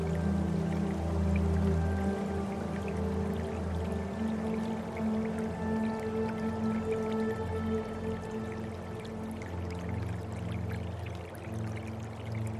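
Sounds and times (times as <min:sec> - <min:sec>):
gentle babbling of a small river: 0:00.0 - 0:12.5.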